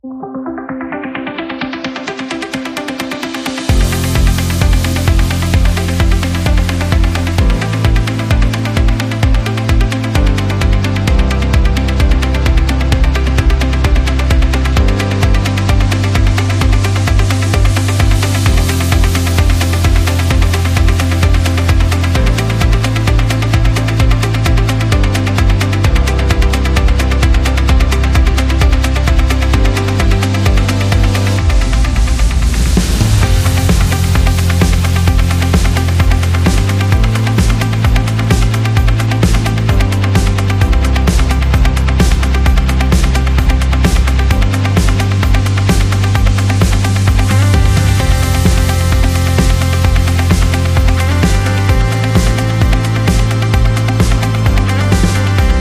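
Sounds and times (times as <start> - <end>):
motivational corporate music: 0.0 - 55.5.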